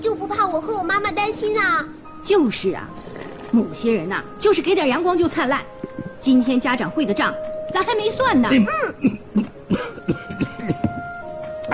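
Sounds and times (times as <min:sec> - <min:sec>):
speech: 0:00.0 - 0:09.2
father coughing after choking on food: 0:08.7 - 0:11.0.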